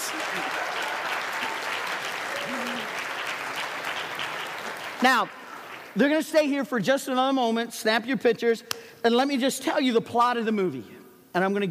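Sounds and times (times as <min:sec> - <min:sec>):
audience applause: 0:00.0 - 0:06.0
speech: 0:05.0 - 0:05.4, 0:06.0 - 0:11.6.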